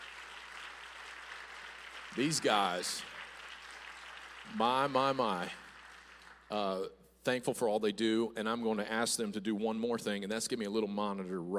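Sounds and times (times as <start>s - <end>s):
audience applause: 0.0s - 6.8s
speech: 2.1s - 3.1s, 4.5s - 5.6s, 6.5s - 11.5s.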